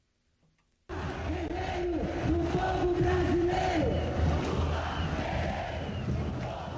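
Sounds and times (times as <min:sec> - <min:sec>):
huge crowd cheering at a political rally in São Paulo: 0:00.9 - 0:06.7.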